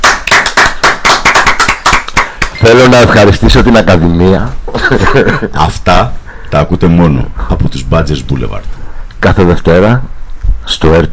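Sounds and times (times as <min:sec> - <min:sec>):
applause from a small group: 0:00.0 - 0:02.6
speech: 0:02.6 - 0:11.1
laughter: 0:04.7 - 0:05.7.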